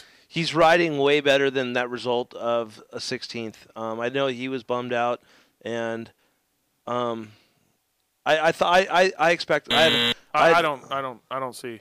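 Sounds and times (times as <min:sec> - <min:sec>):
speech: 0:00.4 - 0:06.2, 0:06.9 - 0:07.4, 0:08.2 - 0:11.7
buzzer buzzing: 0:09.7 - 0:10.6.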